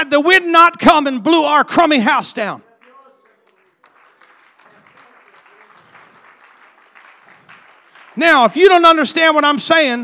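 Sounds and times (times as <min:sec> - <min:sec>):
speech: 0:00.1 - 0:02.7, 0:08.2 - 0:10.0
audience clapping: 0:02.6 - 0:09.4.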